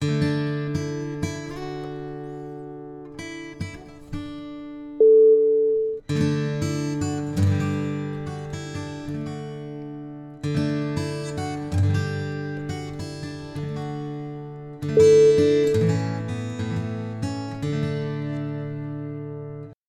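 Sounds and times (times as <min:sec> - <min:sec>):
music: 0:00.0 - 0:05.0, 0:06.0 - 0:19.8.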